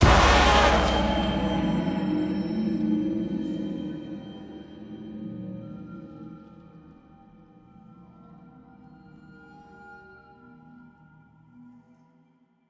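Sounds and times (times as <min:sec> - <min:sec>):
end stinger: 0:00.0 - 0:03.4.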